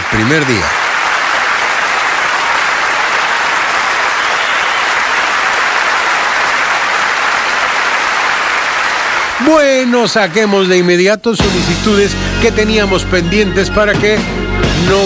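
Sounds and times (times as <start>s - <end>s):
audience applause: 0.0s - 10.8s
speech: 0.1s - 0.8s, 9.4s - 15.0s.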